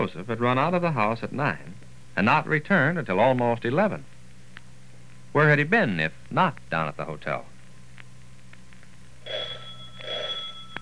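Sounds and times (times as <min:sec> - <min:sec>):
speech: 0:00.0 - 0:04.1, 0:05.3 - 0:07.5
doorbell ringing: 0:09.3 - 0:10.7.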